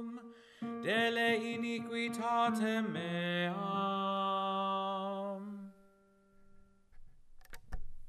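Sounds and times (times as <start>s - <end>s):
tenor singing: 0.0s - 5.9s.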